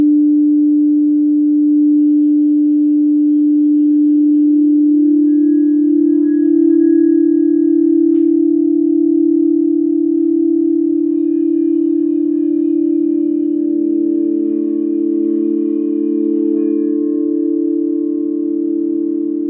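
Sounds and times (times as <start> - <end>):
live sound bath at Common Bond Yoga in Springfield OR: 0.0 - 19.4.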